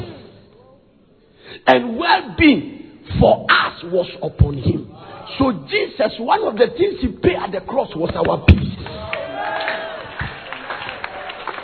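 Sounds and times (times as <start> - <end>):
speech: 1.6 - 8.8
church congregation clapping during a sermon: 8.1 - 11.6.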